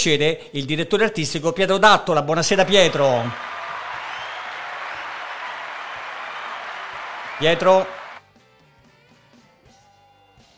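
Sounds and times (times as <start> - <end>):
speech: 0.0 - 3.5, 7.4 - 8.0
applause played as introduction: 2.6 - 8.2.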